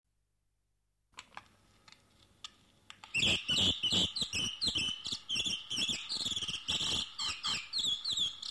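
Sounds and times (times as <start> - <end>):
bird singing bright chirping phrases of quick high notes: 3.1 - 8.4.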